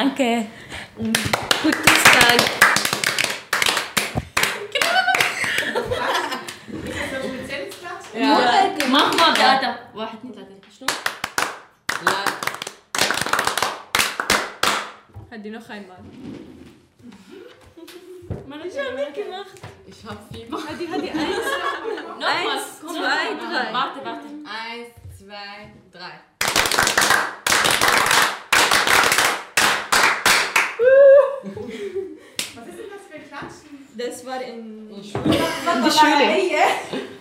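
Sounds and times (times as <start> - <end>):
speech: 0.0 - 2.7, 8.2 - 11.1, 15.4 - 16.4, 18.4 - 27.4, 33.3 - 37.1
group clapping in rhythm: 1.0 - 6.7, 7.7 - 9.8, 10.7 - 15.1, 26.4 - 30.9, 32.4 - 32.6
laughter: 4.5 - 8.7, 20.5 - 23.9, 31.0 - 33.2, 35.2 - 37.2.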